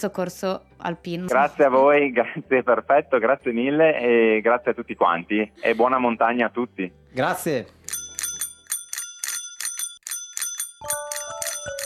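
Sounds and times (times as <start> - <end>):
speech: 0.0 - 7.8
telephone ringing with a bright metallic bell: 7.9 - 11.8.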